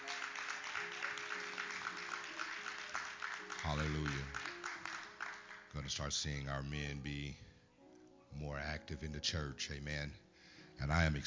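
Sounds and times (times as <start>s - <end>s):
audience clapping: 0.0s - 5.9s
speech: 5.9s - 7.5s, 8.4s - 10.2s, 10.8s - 11.2s.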